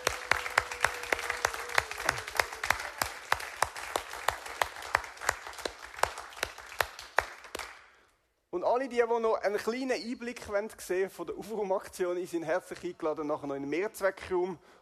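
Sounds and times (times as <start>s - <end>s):
audience applause: 0.0s - 7.8s
speech: 8.7s - 14.8s.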